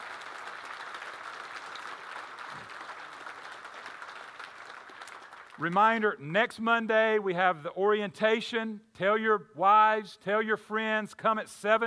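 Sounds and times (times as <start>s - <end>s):
crowd of men applauding: 0.0s - 5.7s
speech: 5.6s - 11.8s.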